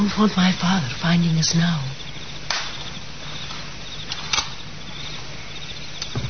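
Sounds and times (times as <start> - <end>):
speech: 0.0 - 2.0
night sounds: 0.0 - 6.2
garden gate shutting softly: 3.5 - 4.7, 6.0 - 6.2.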